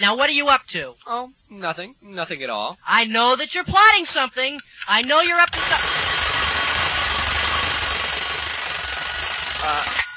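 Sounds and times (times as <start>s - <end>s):
speech: 0.0s - 6.5s
alarm clock going off: 5.5s - 10.1s.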